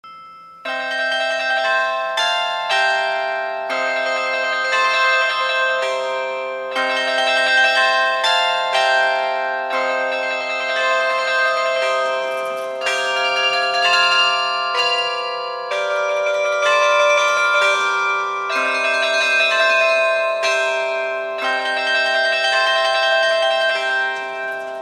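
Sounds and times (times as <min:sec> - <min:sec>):
carillon bells: 0:00.0 - 0:24.7.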